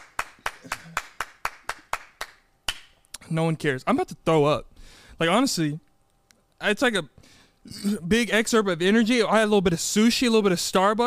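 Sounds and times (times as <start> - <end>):
person clapping: 0.0 - 3.0
speech: 3.3 - 5.9, 6.6 - 11.0.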